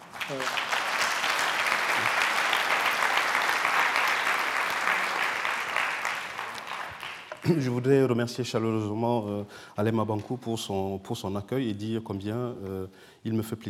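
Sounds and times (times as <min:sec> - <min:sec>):
audience ovation at a French-language literary talk: 0:00.0 - 0:07.8
speech: 0:00.3 - 0:00.7, 0:07.4 - 0:13.6.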